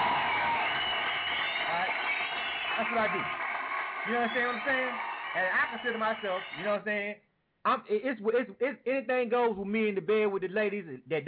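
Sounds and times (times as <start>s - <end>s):
audience clapping at a stand-up comedy show: 0.0s - 6.8s
crowd voices cheering: 0.0s - 6.8s
speech: 2.8s - 3.4s, 4.0s - 11.2s.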